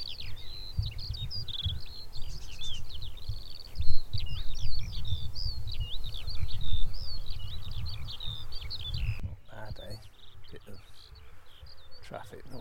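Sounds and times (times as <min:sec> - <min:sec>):
Eurasian skylark singing: 0:00.0 - 0:12.5
low wind noise: 0:00.0 - 0:12.5.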